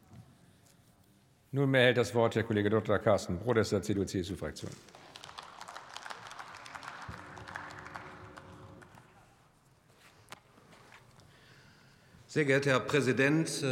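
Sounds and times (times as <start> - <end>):
speech: 1.5 - 5.0, 12.4 - 13.6
applause in parliament: 4.8 - 9.5.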